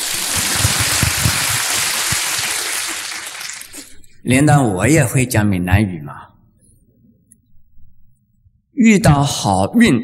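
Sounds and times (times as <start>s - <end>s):
audience applause: 0.0s - 3.9s
speech: 4.2s - 6.3s, 8.8s - 10.0s.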